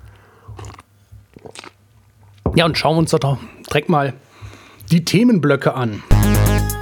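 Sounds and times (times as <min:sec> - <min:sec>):
coffee sipping and swallowing: 0:00.0 - 0:02.4
speech: 0:02.6 - 0:04.2, 0:04.9 - 0:06.7.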